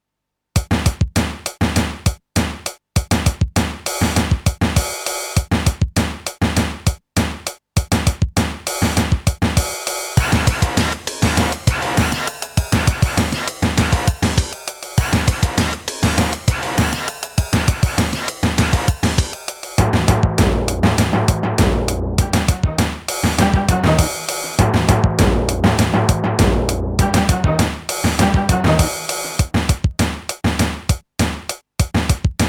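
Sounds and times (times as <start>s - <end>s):
Drumtraks drum machine weird percussion: 0.6s - 32.4s.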